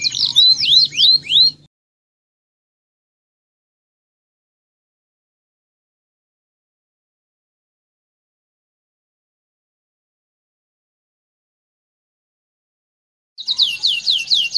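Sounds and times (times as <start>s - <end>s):
standard-type canary song: 0.0s - 1.7s, 13.4s - 14.5s.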